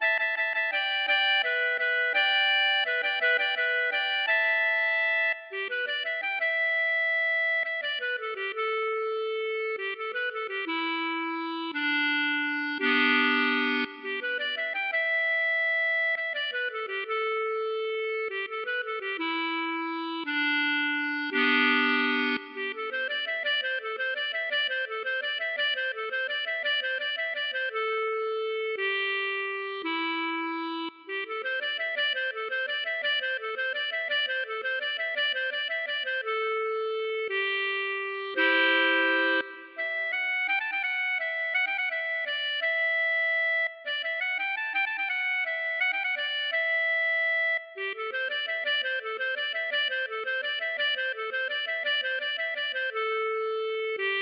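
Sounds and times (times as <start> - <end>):
waltz music: 0.0 - 54.2.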